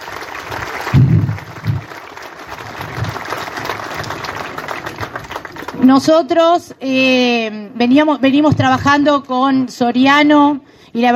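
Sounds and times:
audience applause: 0.0 - 5.9
speech: 5.8 - 11.1.

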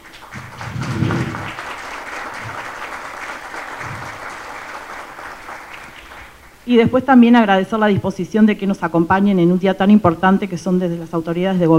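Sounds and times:
crowd applauding: 0.0 - 6.6
speech: 6.7 - 11.7.

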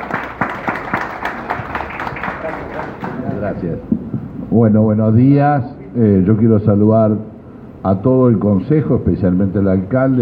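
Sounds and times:
audience applause: 0.0 - 3.5
speech: 2.8 - 10.2.

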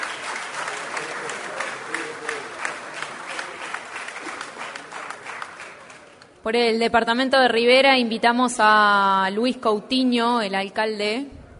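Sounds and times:
audience applause: 0.0 - 6.2
speech: 6.4 - 11.4.

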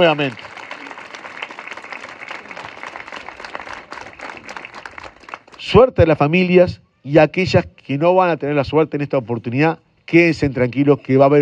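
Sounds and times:
speech: 0.0 - 0.5, 5.7 - 11.3
sustained audience applause: 0.0 - 5.6.

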